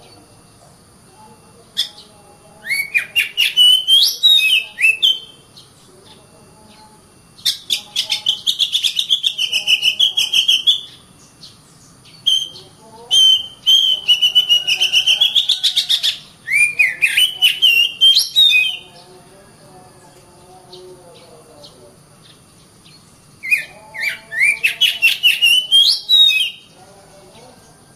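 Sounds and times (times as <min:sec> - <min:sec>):
Oriental magpie-robin whistling and chattering: 0:01.7 - 0:05.8, 0:07.4 - 0:19.1, 0:22.2 - 0:26.8.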